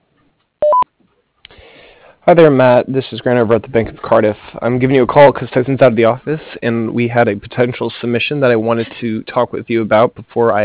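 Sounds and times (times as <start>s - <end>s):
voicemail recording tone: 0.6s - 0.9s
speech: 2.3s - 10.6s.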